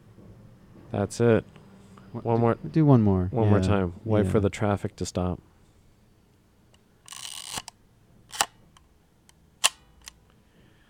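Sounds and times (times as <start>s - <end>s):
speech: 0.9s - 5.5s
film camera winding crank ratcheting: 7.0s - 8.9s, 9.6s - 10.2s
film camera springy shutter clicks: 7.1s - 8.6s, 9.6s - 10.2s.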